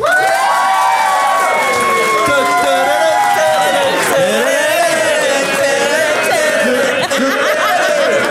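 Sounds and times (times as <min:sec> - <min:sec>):
whoops and shouts: 0:00.0 - 0:04.6
crowd cheering and applauding: 0:00.0 - 0:08.2
laughter: 0:01.6 - 0:08.2.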